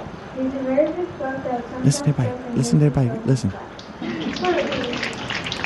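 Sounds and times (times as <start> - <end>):
speech: 0.4 - 3.7
voice: 1.8 - 3.5
crowd applause at an assembly over a poor PA: 4.0 - 5.6.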